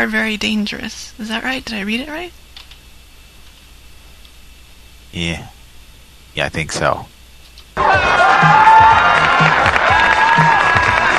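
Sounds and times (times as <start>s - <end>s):
speech: 0.0s - 2.4s, 5.1s - 5.6s, 6.3s - 7.1s
audience whoops: 7.8s - 11.1s
live audience cheering and applauding: 7.8s - 11.1s.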